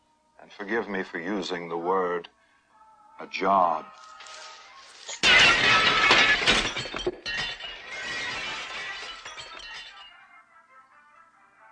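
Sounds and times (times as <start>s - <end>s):
speech: 0.5s - 2.4s, 3.2s - 4.1s
glass window shattering from thrown duck: 4.2s - 10.1s.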